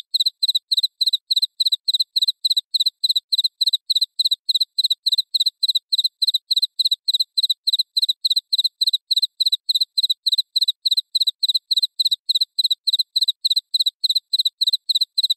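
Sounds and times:
cricket chirping: 0:00.1 - 0:15.3.

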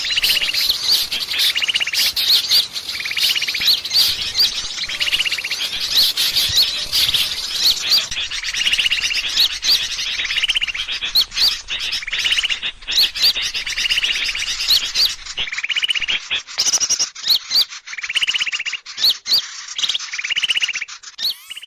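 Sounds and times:
birds chirping: 0:00.0 - 0:21.6.

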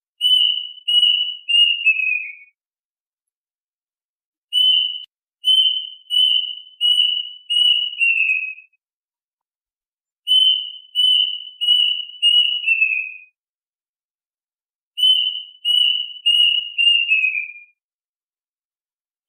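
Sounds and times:
duck whistled calls: 0:00.2 - 0:02.5, 0:04.6 - 0:08.7, 0:10.3 - 0:13.2, 0:15.0 - 0:17.7.

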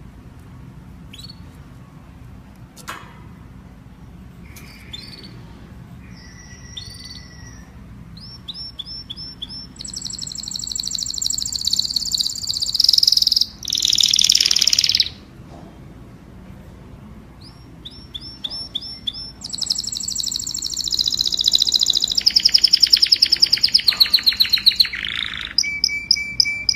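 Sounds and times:
domestic canary singing: 0:01.1 - 0:01.6, 0:04.4 - 0:15.3, 0:17.3 - 0:26.7.

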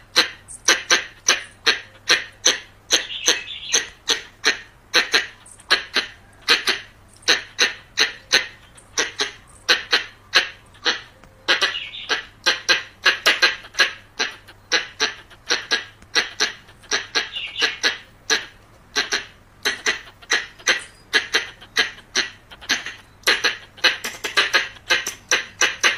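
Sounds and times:
variable squirrel chucking calls: 0:00.0 - 0:25.9.

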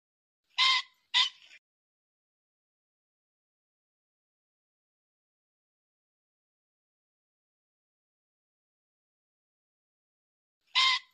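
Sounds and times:
pheasant rasping squawks: 0:00.5 - 0:01.6, 0:10.7 - 0:11.1.

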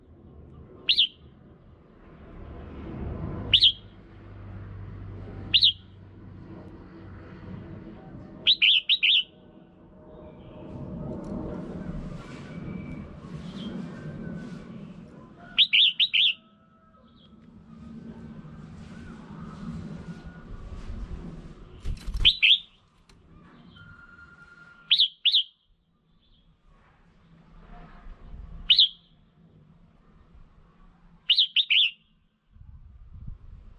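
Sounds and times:
red-whiskered bulbul calls: 0:00.9 - 0:01.2, 0:03.5 - 0:03.8, 0:05.5 - 0:05.8, 0:08.5 - 0:09.3, 0:15.4 - 0:17.4, 0:22.1 - 0:25.6, 0:28.7 - 0:29.0, 0:31.3 - 0:32.0.

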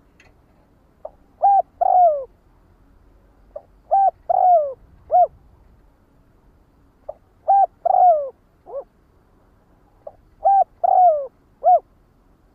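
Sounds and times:
spotted dove cooing: 0:01.0 - 0:02.4, 0:03.5 - 0:05.5, 0:07.1 - 0:08.9, 0:10.0 - 0:11.9.

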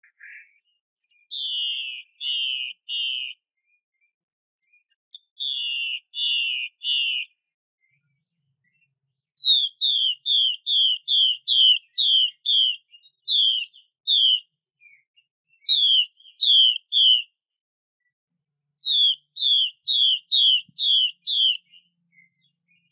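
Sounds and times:
Chinese hwamei singing whistles: 0:01.3 - 0:03.4, 0:05.2 - 0:07.3, 0:09.4 - 0:17.3, 0:18.8 - 0:22.9.

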